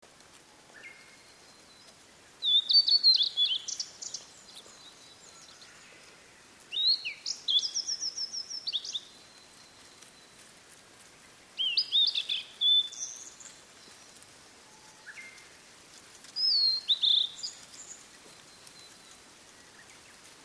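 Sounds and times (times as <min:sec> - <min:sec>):
Blue-and-white flycatcher singing sweet whistles: 0:00.8 - 0:05.8, 0:06.7 - 0:10.0, 0:11.6 - 0:13.5, 0:16.4 - 0:20.0.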